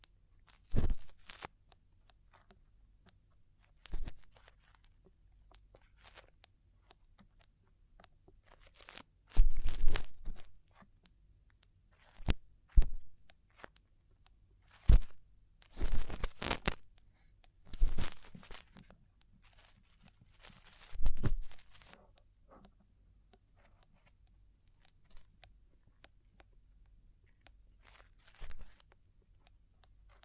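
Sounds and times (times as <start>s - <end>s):
Chinese ear cleaning scratching and crinkling: 0.5s - 1.5s, 5.8s - 6.4s, 8.4s - 10.8s, 11.9s - 13.8s, 14.6s - 16.8s, 17.7s - 22.0s, 27.8s - 28.9s.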